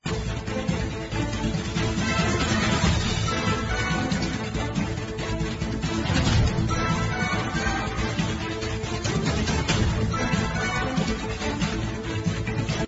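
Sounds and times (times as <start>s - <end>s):
boss battle background music: 0.0s - 12.8s.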